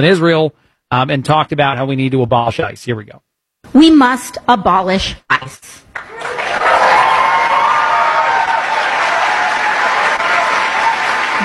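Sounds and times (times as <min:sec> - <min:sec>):
speech: 0:00.0 - 0:06.7
crowd applauding at a rally: 0:05.9 - 0:11.4.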